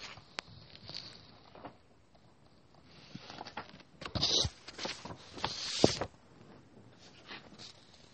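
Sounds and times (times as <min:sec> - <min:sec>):
pen or pencil scratching across paper drawing and writing: 0:04.1 - 0:06.0.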